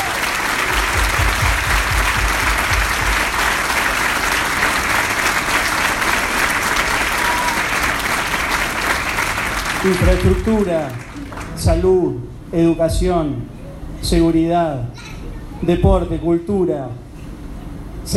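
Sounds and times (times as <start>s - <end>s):
loud audience applause: 0.0s - 11.7s
speech: 9.8s - 17.0s.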